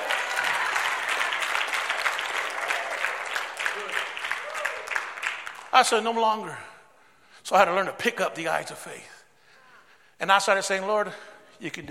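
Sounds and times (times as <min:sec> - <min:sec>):
audience clapping: 0:00.0 - 0:06.1
speech: 0:05.8 - 0:06.7, 0:07.5 - 0:09.1, 0:10.2 - 0:11.8.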